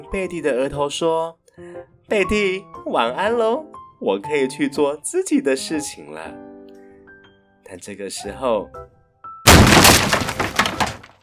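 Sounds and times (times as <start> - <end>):
speech: 0.0 - 6.5, 7.7 - 8.9
toys tumbling out of a cabinet: 9.5 - 11.2.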